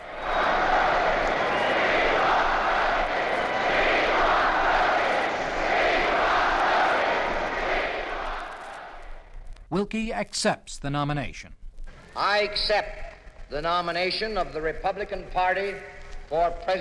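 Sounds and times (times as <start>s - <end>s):
crowd cheering for Wendell Willkie at the 1940 Republican convention: 0.0s - 9.3s
old recording hiss: 0.0s - 16.7s
speech: 9.9s - 11.6s, 12.2s - 16.7s.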